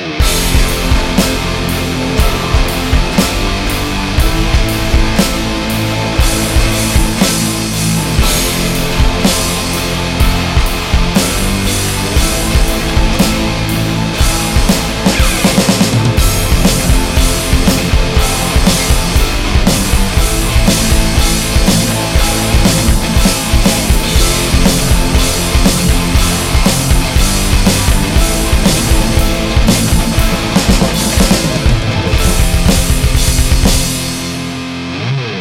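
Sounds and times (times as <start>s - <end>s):
suspense music: 0.2s - 35.2s.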